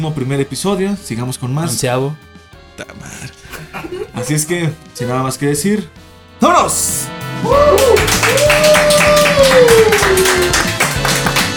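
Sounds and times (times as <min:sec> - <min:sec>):
speech: 0:00.0 - 0:10.8
laughter: 0:02.8 - 0:04.8
applause: 0:07.5 - 0:11.5.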